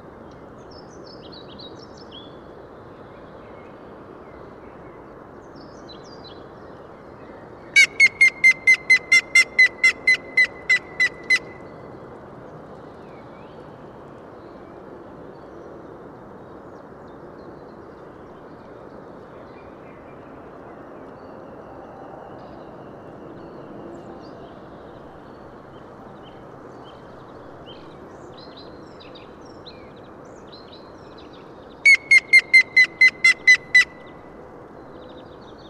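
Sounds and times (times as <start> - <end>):
grey-headed woodpecker calling: 7.8 - 11.6, 31.8 - 34.2.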